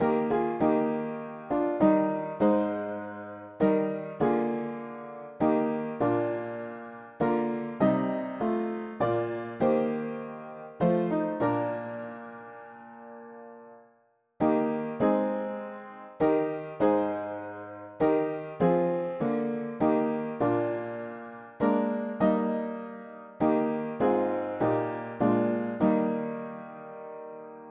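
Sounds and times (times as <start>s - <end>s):
mono piano: 0.0s - 27.6s.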